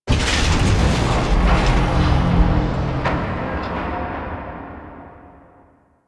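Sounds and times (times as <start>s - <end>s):
void dragon moving: 0.1s - 4.2s.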